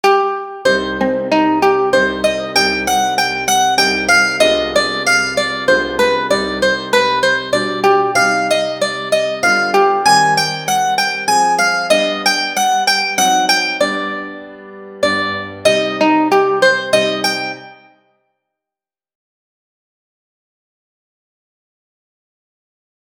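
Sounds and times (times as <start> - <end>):
mandolin playing an adagio: 0.0 - 18.0
piano playing an adagio: 0.6 - 17.6.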